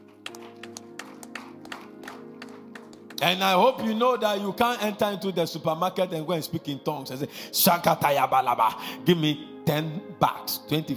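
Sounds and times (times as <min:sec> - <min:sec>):
audience clapping: 0:00.0 - 0:03.4
speech: 0:03.2 - 0:10.9.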